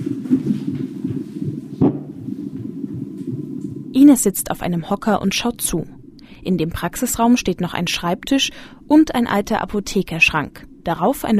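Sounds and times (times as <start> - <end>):
rapid whooshing pulse from a monitor speaker: 0.0 - 4.0
thump: 1.8 - 2.2
speech: 4.0 - 11.3.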